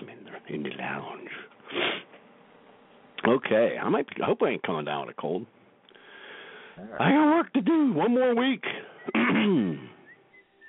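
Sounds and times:
speech: 0.5 - 2.0, 3.3 - 5.6, 6.8 - 9.9
person sniffing: 1.6 - 2.1.

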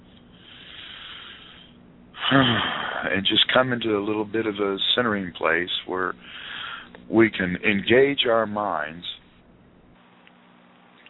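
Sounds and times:
deep breath in and out: 0.0 - 3.1, 6.2 - 7.0
speech: 2.3 - 6.4, 7.1 - 9.1.

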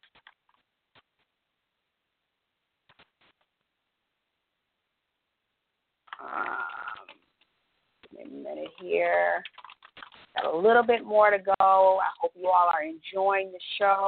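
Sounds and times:
typing on a keyboard: 0.0 - 0.6, 8.6 - 10.5
speech: 10.5 - 14.0.

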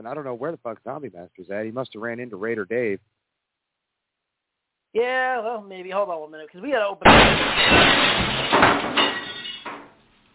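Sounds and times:
speech: 0.0 - 3.2, 4.9 - 9.2
sharp clattering hits: 7.0 - 9.9
lo-fi glass sound effect crash: 7.0 - 10.0.

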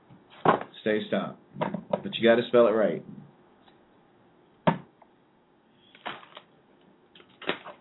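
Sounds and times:
speech: 0.8 - 3.2
deck of playing cards shuffling: 7.2 - 7.7.

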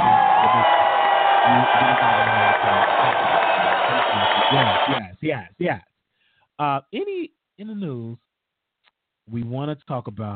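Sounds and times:
audience applause: 0.0 - 5.0
speech: 5.4 - 5.9, 6.6 - 8.2, 9.3 - 10.3.

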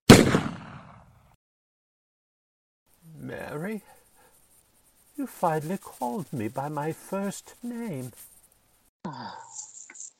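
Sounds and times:
gunshot: 0.1 - 1.2
speech: 3.6 - 4.0, 5.2 - 8.3, 9.0 - 9.7.

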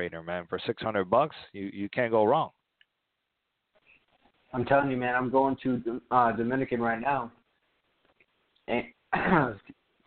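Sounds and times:
speech: 0.0 - 2.6, 4.5 - 7.4, 8.7 - 9.8
person coughing after water down wrong pipe: 9.1 - 9.8.

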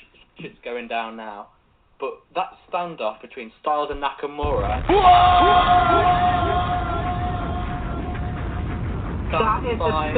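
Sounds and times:
speech: 0.4 - 6.8, 9.3 - 10.1
wrestling audience cheering: 4.6 - 10.1.

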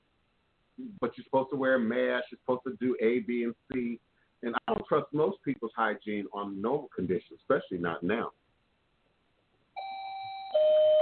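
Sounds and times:
speech: 0.8 - 8.4
electronic doorbell two-tone chime: 9.8 - 11.0.

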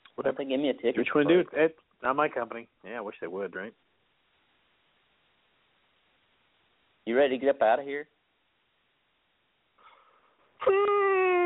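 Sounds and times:
speech: 0.2 - 3.9, 7.1 - 8.2, 10.6 - 11.1
person yawning: 10.6 - 11.4.

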